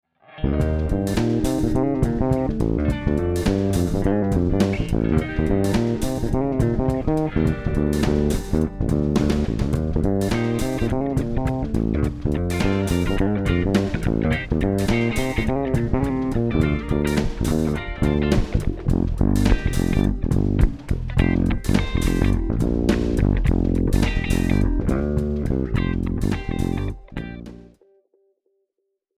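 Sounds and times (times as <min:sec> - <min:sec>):
funk music: 0:00.4 - 0:27.8.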